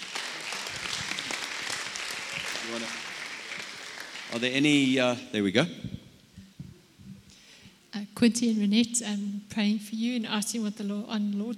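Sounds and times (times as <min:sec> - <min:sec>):
audience applause: 0:00.0 - 0:05.1
speech: 0:02.6 - 0:03.0, 0:04.3 - 0:05.9, 0:08.2 - 0:11.5.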